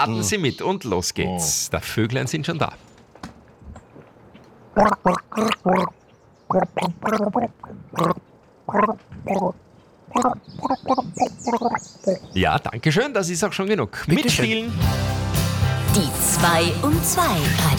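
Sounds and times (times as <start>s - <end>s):
speech: 0.0s - 2.9s, 4.8s - 17.7s
person gargling a tune: 4.8s - 5.9s, 6.5s - 12.2s.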